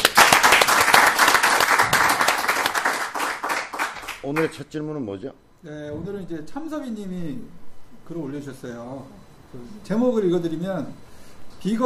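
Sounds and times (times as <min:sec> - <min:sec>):
applause: 0:00.0 - 0:04.6
speech: 0:04.2 - 0:11.8.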